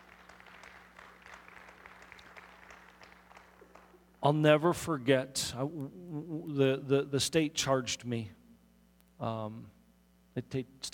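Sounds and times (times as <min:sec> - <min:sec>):
faint audience clapping: 0:00.0 - 0:04.2
faint low hum: 0:00.0 - 0:10.9
speech: 0:04.2 - 0:08.4, 0:09.2 - 0:09.8, 0:10.4 - 0:10.9.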